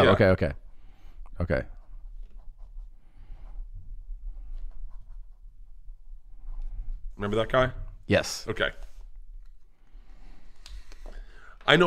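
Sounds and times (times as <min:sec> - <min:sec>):
speech: 0:00.0 - 0:00.6, 0:01.4 - 0:01.8, 0:07.2 - 0:08.9, 0:11.7 - 0:11.8
writing something down: 0:01.6 - 0:07.1.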